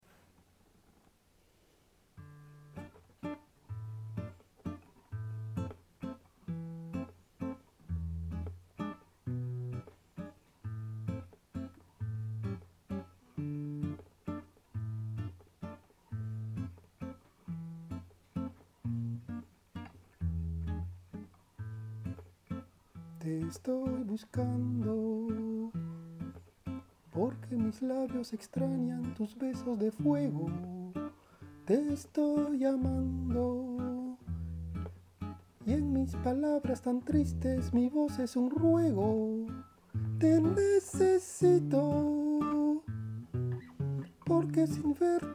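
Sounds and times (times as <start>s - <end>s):
guitar: 2.1s - 45.3s
person singing: 23.2s - 25.8s, 27.1s - 31.1s, 31.7s - 34.3s, 35.6s - 42.9s, 44.2s - 45.3s.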